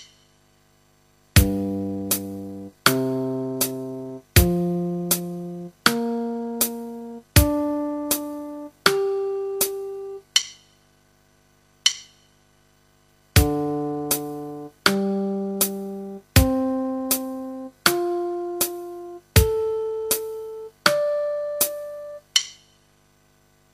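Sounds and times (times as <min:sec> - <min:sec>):
guitar backing track: 0:01.4 - 0:10.3, 0:13.4 - 0:22.4.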